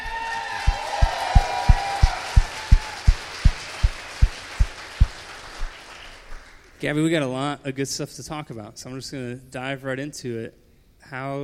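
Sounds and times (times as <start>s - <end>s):
audience applause for a superstar: 0.0s - 6.6s
speech: 6.8s - 11.4s.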